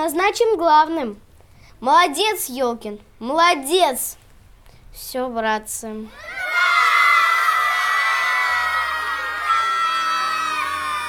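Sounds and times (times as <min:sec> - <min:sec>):
speech: 0:00.0 - 0:01.2, 0:01.8 - 0:04.2, 0:04.9 - 0:06.4
crowd of children shouting and cheering: 0:06.1 - 0:11.0.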